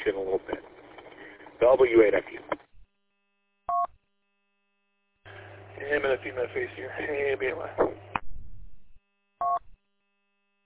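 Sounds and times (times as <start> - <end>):
speech: 1.7 - 2.4, 6.2 - 8.1
touch-tone beeps of a phone number being dialed: 3.7 - 3.9, 9.4 - 9.6.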